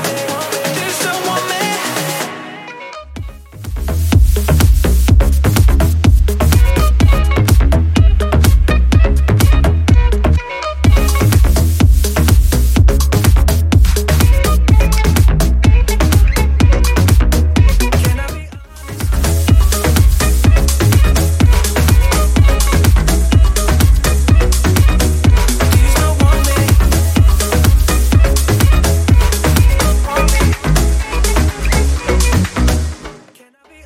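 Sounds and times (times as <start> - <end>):
house music beat at 125 bpm: 0.0 - 33.4.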